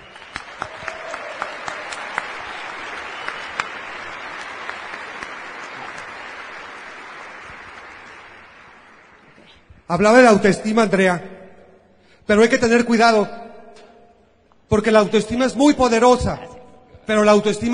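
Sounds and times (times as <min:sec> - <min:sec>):
audience applause: 0:00.0 - 0:09.6
speech: 0:09.9 - 0:11.4, 0:12.3 - 0:13.4, 0:14.7 - 0:16.5, 0:17.1 - 0:17.7.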